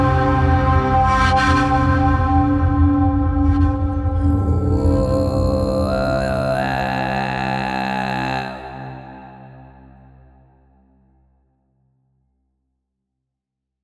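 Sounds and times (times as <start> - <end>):
mysterious mystical Tibetan eastern music: 0.0 - 10.5.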